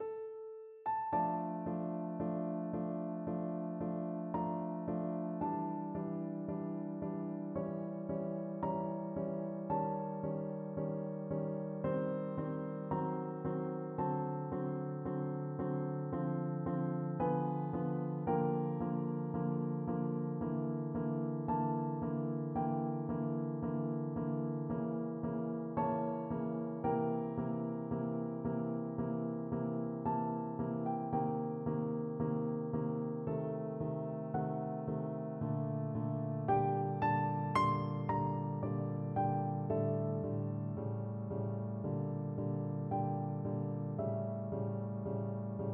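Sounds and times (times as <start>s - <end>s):
prelude piano duet: 0.0s - 45.7s.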